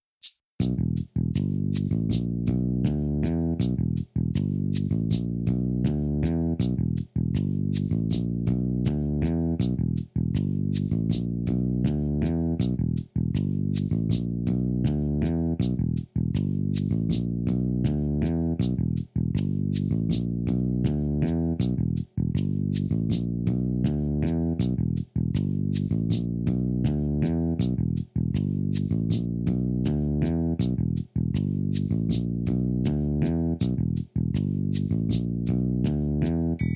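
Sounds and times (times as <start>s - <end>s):
bass loop: 0.6s - 36.6s.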